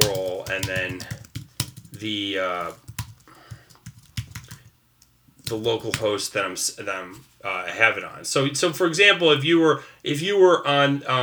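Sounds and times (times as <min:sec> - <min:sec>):
typing on a computer keyboard: 0:00.0 - 0:04.7, 0:05.4 - 0:06.2
speech: 0:00.6 - 0:01.2, 0:02.0 - 0:02.9, 0:05.5 - 0:11.2.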